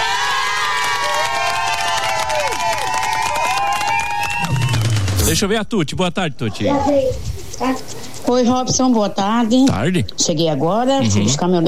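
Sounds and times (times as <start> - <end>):
audience applause: 0.0 - 5.3
speech: 5.3 - 11.6.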